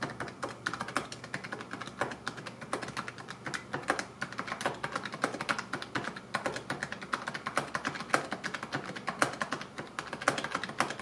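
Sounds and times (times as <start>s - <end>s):
typing on a PinePhone keyboard: 0.0s - 11.0s.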